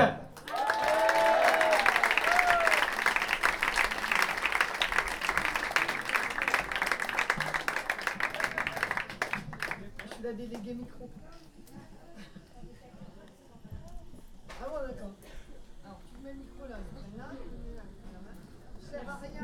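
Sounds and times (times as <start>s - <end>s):
audience applause: 0.3s - 10.3s.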